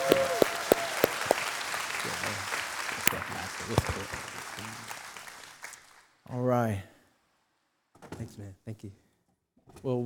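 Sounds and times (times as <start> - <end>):
audience clapping to welcome a guest speaker: 0.0 - 6.2
speech: 6.4 - 6.9, 8.6 - 9.1, 9.7 - 10.0.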